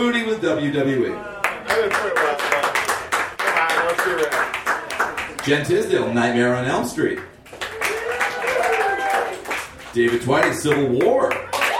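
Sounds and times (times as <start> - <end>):
speech: 0.0 - 2.3, 5.4 - 7.3, 10.0 - 11.4
audience applause: 1.4 - 5.4, 7.5 - 10.5.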